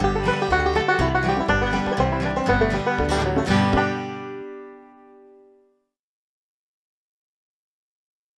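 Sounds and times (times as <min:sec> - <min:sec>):
bluegrass banjo tune: 0:00.0 - 0:05.5.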